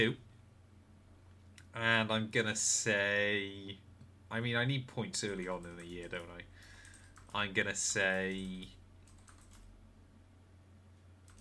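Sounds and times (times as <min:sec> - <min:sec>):
speech: 0:00.0 - 0:00.2, 0:01.8 - 0:06.7, 0:07.3 - 0:08.8
steady hum: 0:00.0 - 0:11.3
typing on a computer keyboard: 0:05.6 - 0:07.4, 0:08.1 - 0:09.7.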